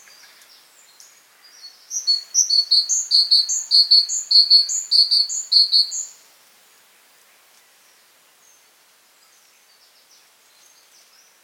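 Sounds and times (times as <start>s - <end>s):
great tit whistled calls: 0.0s - 6.2s
faint hiss: 0.0s - 11.4s
speech: 2.7s - 6.5s.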